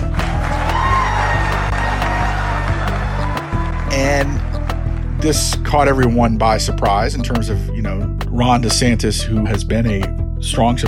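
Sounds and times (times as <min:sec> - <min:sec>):
crowd cheering: 0:00.0 - 0:05.1
hands clapping: 0:00.0 - 0:05.6
speech: 0:05.2 - 0:10.8.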